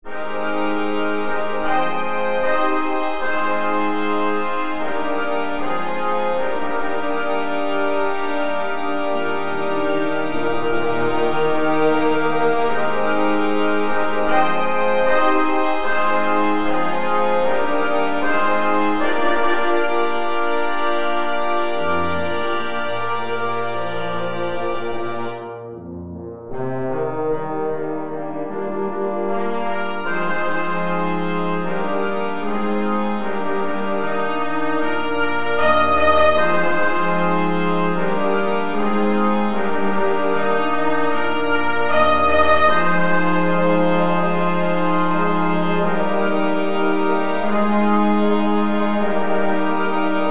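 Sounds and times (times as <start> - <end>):
celebration brass fanfare: 0.0 - 50.2.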